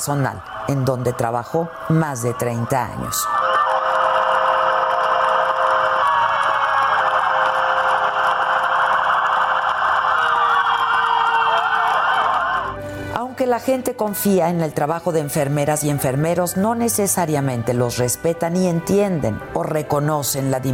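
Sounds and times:
speech: 0:00.0 - 0:03.5, 0:13.5 - 0:20.7
wailing hospital emergency sirens: 0:00.0 - 0:12.8.

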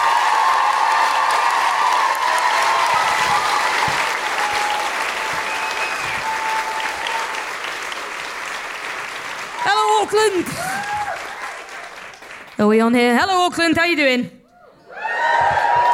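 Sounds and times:
scattered cheers from a live audience in Auckland: 0:00.0 - 0:07.8, 0:09.5 - 0:12.0, 0:14.9 - 0:15.9
live audience applause greeting a performer walking on stage in Auckland: 0:00.0 - 0:12.6, 0:15.0 - 0:15.9
speech: 0:12.7 - 0:14.4.

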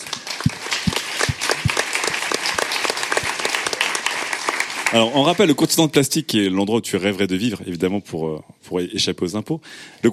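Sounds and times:
audience applause: 0:00.0 - 0:05.6
speech: 0:04.9 - 0:10.1.

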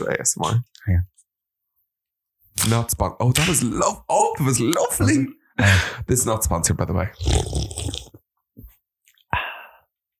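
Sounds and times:
speech: 0:00.0 - 0:01.2, 0:02.6 - 0:08.0
sipping from a can of Coke Zero: 0:07.2 - 0:08.2.

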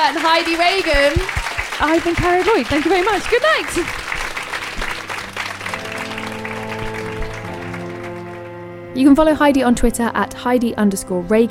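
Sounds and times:
audience applause and cheering: 0:00.0 - 0:08.8
speech: 0:00.1 - 0:04.0, 0:09.0 - 0:11.4
sustained musical tone: 0:02.8 - 0:09.8.

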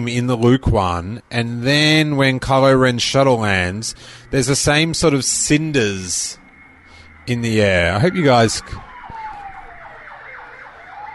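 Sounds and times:
speech: 0:00.0 - 0:06.4, 0:07.2 - 0:08.9
fire engine siren outside near a truck crash at a bridge: 0:01.8 - 0:11.1.

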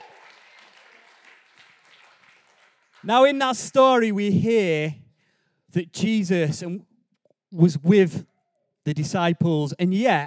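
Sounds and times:
crowd round of applause: 0:00.0 - 0:03.1
speech: 0:03.0 - 0:05.0, 0:05.7 - 0:06.9, 0:07.5 - 0:10.2.

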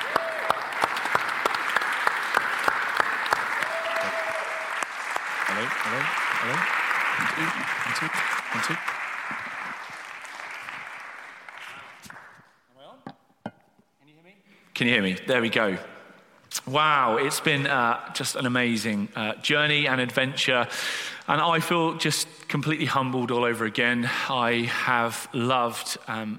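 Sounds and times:
audience applauding: 0:00.0 - 0:12.5
speech: 0:07.4 - 0:09.0, 0:14.8 - 0:15.9, 0:16.6 - 0:26.3.

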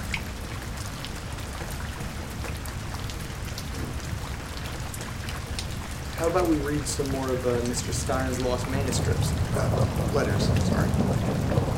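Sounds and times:
heavy rain pouring: 0:00.0 - 0:11.7
speech: 0:06.2 - 0:11.7.

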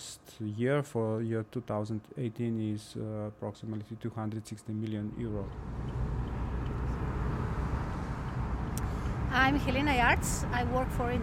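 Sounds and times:
speech: 0:00.4 - 0:06.0, 0:09.3 - 0:11.2
car driving on a Slovenian toll motorway: 0:05.0 - 0:11.2.

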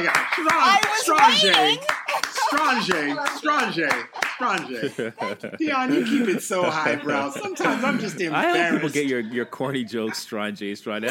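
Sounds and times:
hand clapping: 0:00.0 - 0:04.9
laughter: 0:00.0 - 0:10.3
speech: 0:00.0 - 0:11.0.

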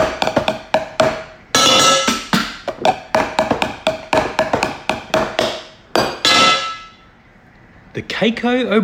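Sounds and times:
metal pots and pans being struck: 0:00.0 - 0:07.0
speech: 0:08.2 - 0:08.8.

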